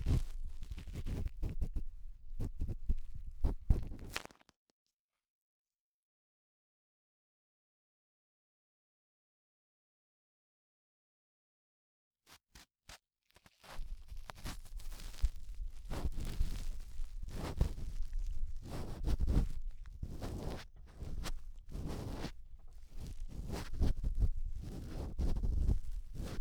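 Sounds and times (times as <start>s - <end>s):
cotton swab rubbing deep inside the right ear: 0.0s - 4.2s, 13.6s - 26.4s.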